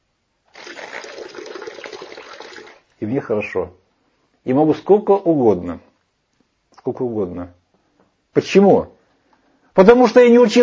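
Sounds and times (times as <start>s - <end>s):
water pouring from a glass onto a sheet of paper: 0.5s - 2.9s
speech: 3.0s - 3.8s, 4.4s - 5.9s, 6.8s - 7.6s, 8.4s - 9.0s, 9.8s - 10.6s.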